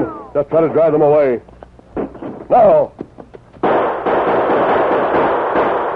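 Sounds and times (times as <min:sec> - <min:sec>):
speech: 0:00.4 - 0:01.6, 0:02.5 - 0:03.0
rifle gunfire: 0:03.6 - 0:05.9.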